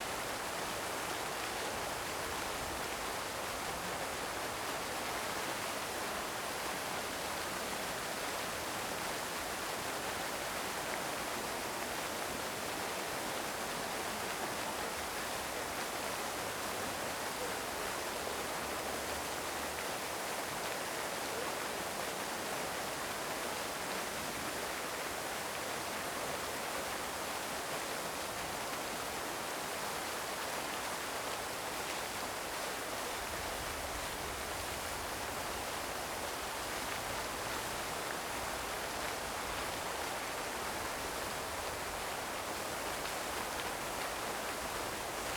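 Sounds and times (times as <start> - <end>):
fountain: 0.0 - 45.3.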